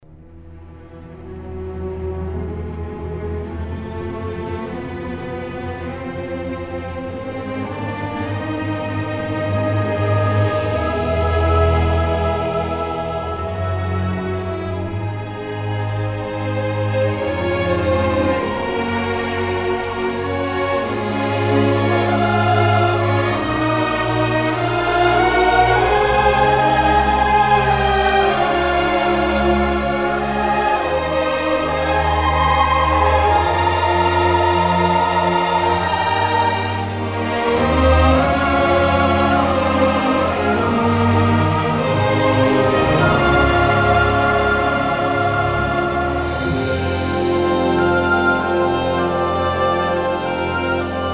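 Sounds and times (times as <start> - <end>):
grand background music: 0.0 - 51.1.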